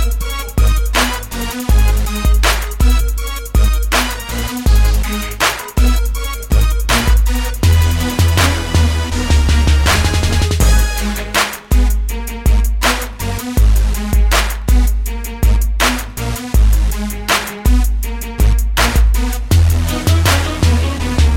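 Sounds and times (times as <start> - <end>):
crunk beat: 0.0 - 21.3.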